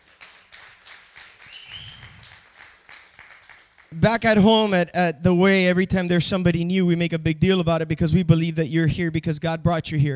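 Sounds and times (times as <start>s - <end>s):
audience clapping for visitors: 0.0s - 4.4s
speech: 3.9s - 10.1s.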